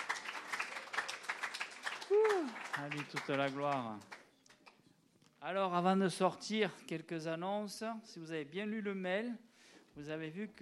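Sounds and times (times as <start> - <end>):
congregation applauding the Lord in worship: 0.0 - 4.8
speech: 2.4 - 4.1, 5.4 - 10.5.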